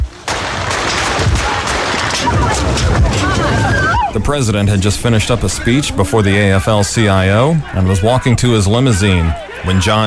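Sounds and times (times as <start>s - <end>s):
crowd noise with voices: 0.0s - 10.0s
gunshots fired at President Reagan outside the Washington Hilton: 0.2s - 4.0s
speech: 4.1s - 10.0s.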